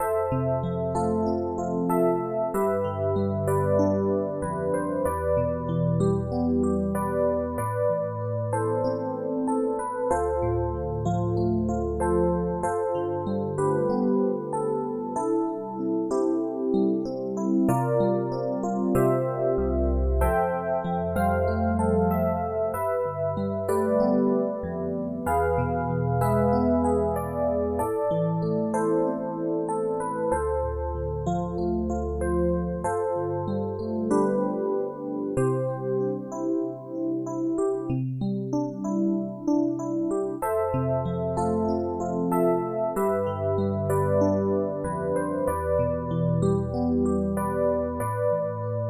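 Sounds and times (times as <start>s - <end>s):
background music: 0.0s - 48.8s.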